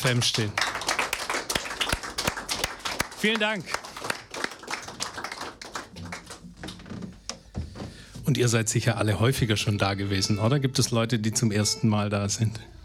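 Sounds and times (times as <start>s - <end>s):
speech: 0.0s - 0.8s, 3.2s - 3.8s, 8.3s - 12.8s
audience applause: 0.0s - 6.9s.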